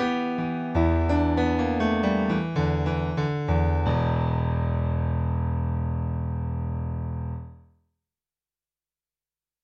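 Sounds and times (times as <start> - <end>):
piano: 0.0 - 7.7.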